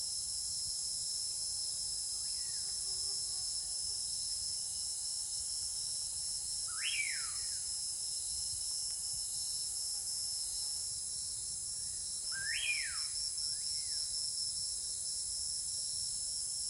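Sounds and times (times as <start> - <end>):
tropical rainforest night ambience: 6.7 - 7.7, 11.8 - 14.1.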